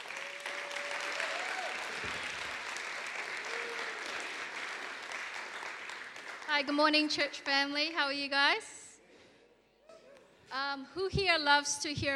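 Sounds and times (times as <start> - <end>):
church audience applause: 0.0 - 6.6
speech: 6.6 - 8.8, 10.5 - 12.1.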